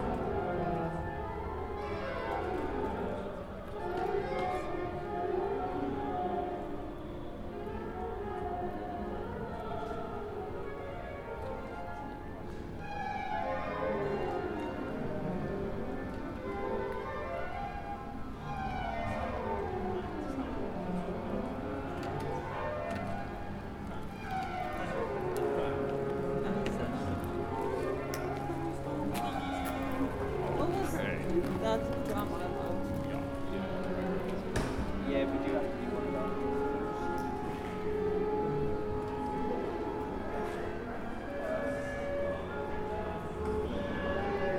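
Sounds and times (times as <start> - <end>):
overlapping instruments from practice rooms in London: 0.0 - 44.5.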